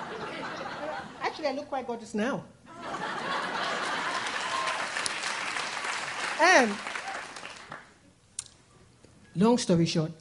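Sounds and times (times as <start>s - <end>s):
laughter: 0.0s - 1.4s, 2.7s - 4.8s
speech: 1.4s - 3.2s, 6.4s - 6.9s, 9.4s - 10.1s
audience applause: 3.2s - 8.0s.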